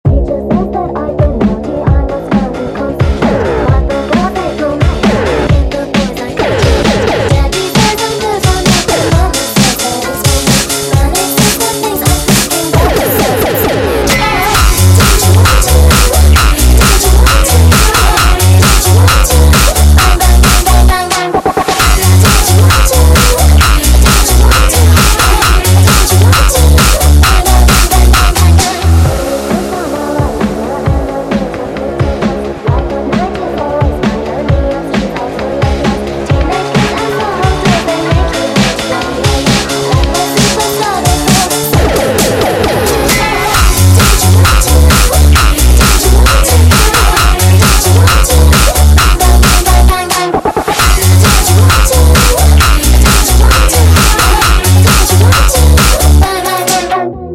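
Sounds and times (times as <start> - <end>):
sped-up tekk music: 0.0 - 57.3.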